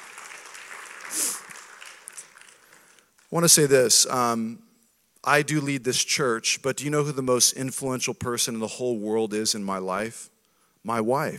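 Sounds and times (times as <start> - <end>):
audience clapping: 0.0 - 3.3
speech: 3.3 - 11.3.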